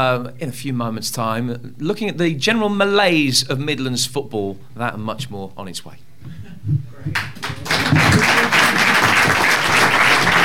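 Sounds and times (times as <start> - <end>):
speech: 0.0 - 7.3
studio audience applause at a live football discussion show: 7.1 - 10.4.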